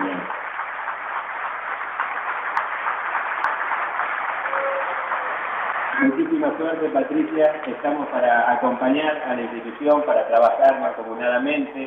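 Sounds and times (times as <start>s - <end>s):
audience applause: 0.0s - 7.2s
speech: 6.0s - 11.8s.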